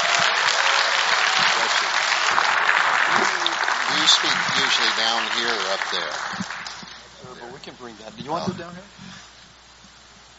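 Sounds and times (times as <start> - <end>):
church congregation applauding to welcome a guest speaker: 0.0 - 7.1
speech: 4.0 - 6.6, 7.6 - 9.2.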